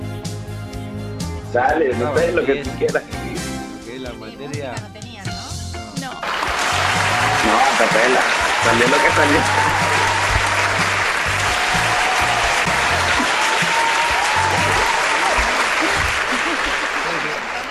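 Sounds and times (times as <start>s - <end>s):
speech: 1.5s - 3.2s, 4.1s - 5.0s, 7.4s - 10.1s
audience applause: 6.2s - 17.6s
laughter: 6.2s - 17.6s.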